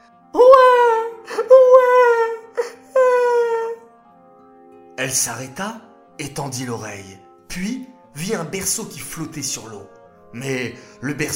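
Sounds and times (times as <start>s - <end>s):
baby crying sound effect: 0.3s - 3.9s
speech: 5.0s - 11.3s.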